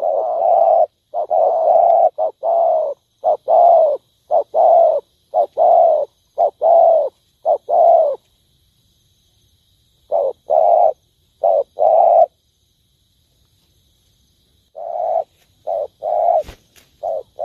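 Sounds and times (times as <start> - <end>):
spotted dove cooing: 0.0 - 8.2, 10.0 - 12.3, 14.7 - 17.4.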